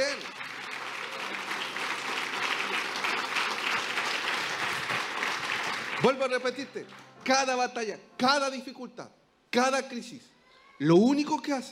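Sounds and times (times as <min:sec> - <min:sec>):
audience applause: 0:00.0 - 0:07.1
speech: 0:06.0 - 0:11.7.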